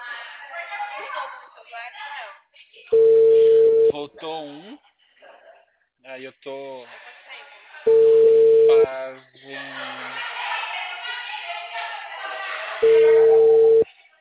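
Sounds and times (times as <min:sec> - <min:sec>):
speech: 0:01.1 - 0:04.9, 0:06.0 - 0:07.0, 0:08.7 - 0:10.2
telephone ringback tone while a call waits to connect: 0:02.9 - 0:04.0, 0:07.9 - 0:08.9, 0:12.8 - 0:13.8
laughter: 0:08.9 - 0:13.6.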